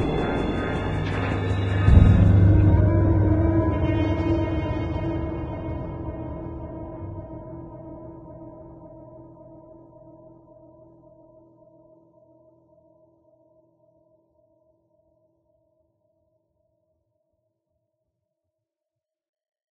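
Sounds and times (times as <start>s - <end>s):
station ambience: 0.0s - 9.4s.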